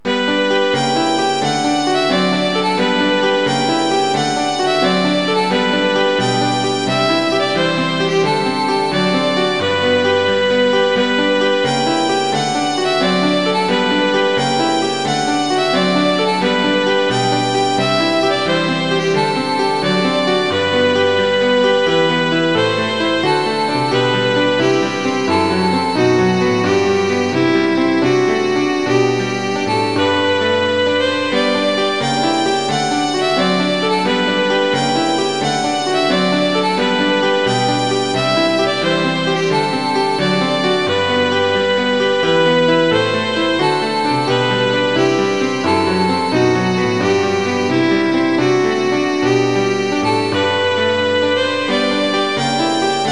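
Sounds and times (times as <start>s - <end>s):
piano: 0.0s - 53.1s
violin: 0.0s - 53.1s.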